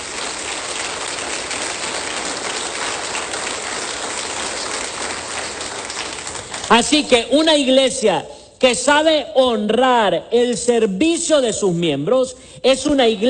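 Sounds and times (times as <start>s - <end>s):
audience applauding: 0.0s - 7.2s
speech: 6.7s - 13.2s.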